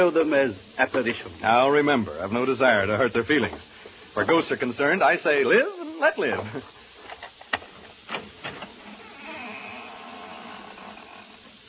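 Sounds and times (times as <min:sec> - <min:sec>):
speech: 0:00.0 - 0:06.8
squeaky door hinge as door opens: 0:08.1 - 0:11.6.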